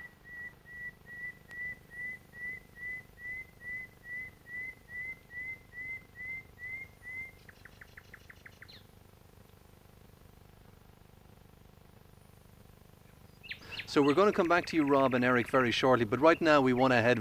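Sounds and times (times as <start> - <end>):
bird singing at dawn: 0.0 - 9.0, 13.1 - 17.1
speech: 13.9 - 17.1.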